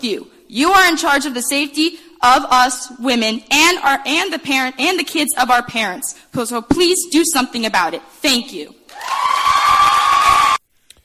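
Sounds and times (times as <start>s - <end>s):
speech: 0.0s - 9.4s
crowd of young women cheering and shrieking: 8.9s - 10.6s.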